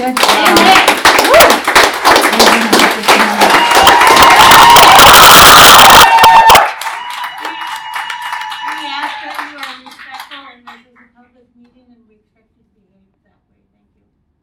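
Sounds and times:
audience applause and cheering: 0:00.3 - 0:10.1.

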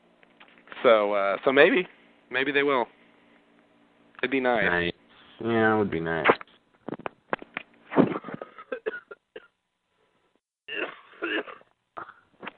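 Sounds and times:
speech: 0:00.8 - 0:03.0, 0:04.2 - 0:06.4
person coughing: 0:08.0 - 0:09.5, 0:10.7 - 0:12.3.

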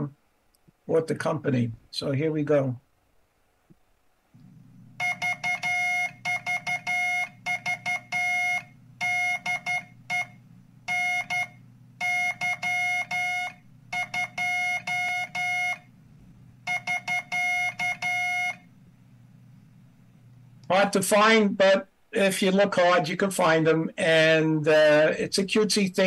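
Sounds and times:
speech: 0:00.9 - 0:02.8, 0:20.9 - 0:26.0
steady low hum: 0:04.3 - 0:20.8
Morse code key oscillator tones: 0:05.0 - 0:15.9, 0:16.6 - 0:18.7.

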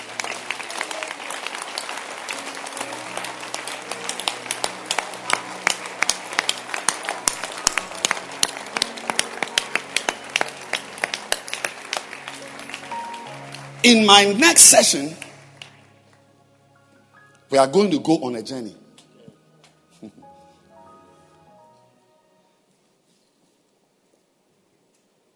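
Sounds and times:
audience clapping hands: 0:00.0 - 0:16.2
speech: 0:13.9 - 0:15.3, 0:17.5 - 0:18.8.

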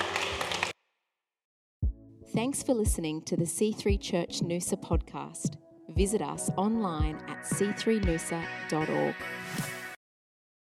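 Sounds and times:
audience clapping hands: 0:00.0 - 0:00.7
speech: 0:02.4 - 0:09.8.

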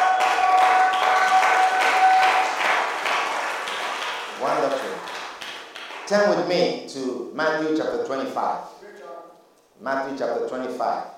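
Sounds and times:
audience clapping: 0:00.0 - 0:06.5
speech: 0:06.1 - 0:08.7, 0:09.8 - 0:11.1.

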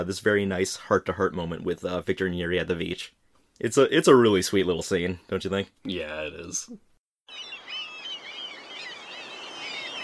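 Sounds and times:
speech: 0:00.0 - 0:07.5
black-tailed gull calls: 0:07.3 - 0:10.0.

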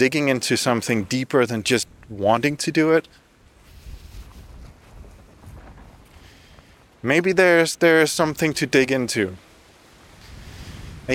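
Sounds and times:
speech: 0:00.0 - 0:03.2, 0:07.0 - 0:09.4
wind buffeting the microphone during an outdoor walk: 0:03.4 - 0:07.0, 0:09.9 - 0:11.1.

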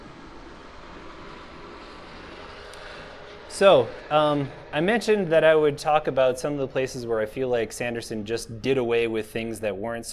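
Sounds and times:
noisy truck carrying massive boulders passing: 0:00.0 - 0:10.1
speech: 0:03.6 - 0:10.1.

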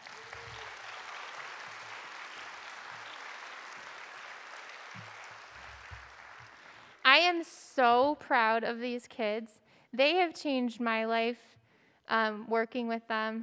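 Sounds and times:
audience applause: 0:00.0 - 0:07.0
speech: 0:07.3 - 0:11.5, 0:12.1 - 0:13.4.

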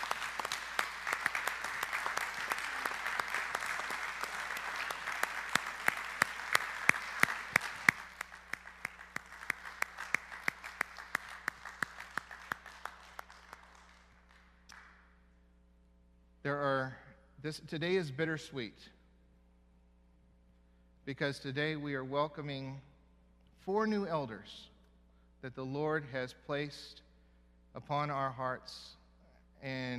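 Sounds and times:
crowd applause: 0:00.0 - 0:14.5
speech: 0:16.5 - 0:19.0, 0:21.1 - 0:22.9, 0:23.6 - 0:24.7, 0:25.4 - 0:27.0, 0:27.7 - 0:29.0, 0:29.6 - 0:29.9.

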